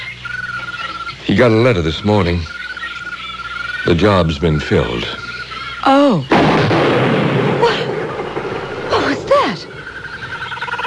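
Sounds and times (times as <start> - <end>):
noisy background: 0.0 - 10.8
speech: 1.3 - 2.6, 3.8 - 5.2, 5.8 - 7.8
gunshot fired inside a tent: 6.3 - 9.1.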